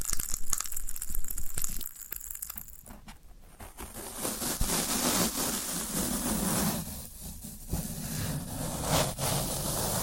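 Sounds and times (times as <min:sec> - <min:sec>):
floral foam being pressed and broken: 0:03.4 - 0:10.0.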